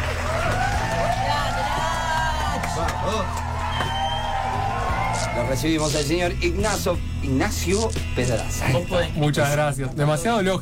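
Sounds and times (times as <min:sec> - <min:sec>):
audience applause: 0:00.0 - 0:05.4
cheers and whoops: 0:00.0 - 0:05.7
speech: 0:05.5 - 0:10.6.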